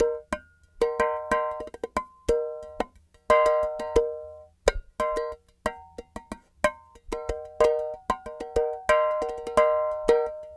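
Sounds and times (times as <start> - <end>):
clay pot world percussion: 0.0 - 10.5.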